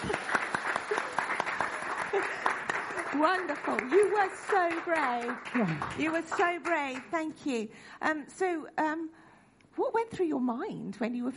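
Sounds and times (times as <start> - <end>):
audience clapping: 0.0 - 7.2
speech: 3.2 - 9.2, 9.8 - 11.3.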